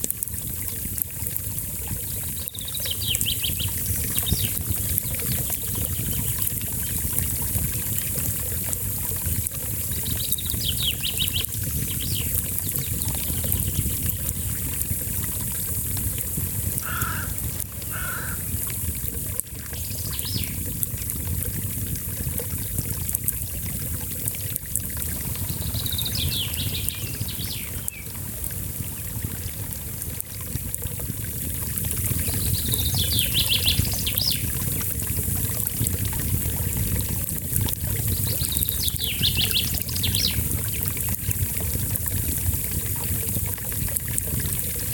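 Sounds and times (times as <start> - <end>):
small brook running: 0.0 - 44.9
birds singing: 1.9 - 8.2, 9.8 - 14.6, 16.8 - 18.6, 19.7 - 20.7, 25.3 - 28.1, 32.1 - 34.6, 38.0 - 41.0
low double bird call: 16.8 - 18.5.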